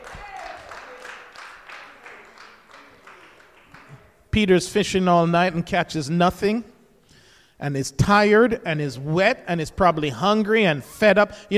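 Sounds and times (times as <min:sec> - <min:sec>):
audience clapping hands in a steady rhythm: 0:00.0 - 0:04.3
speech: 0:04.4 - 0:06.7, 0:07.6 - 0:11.5.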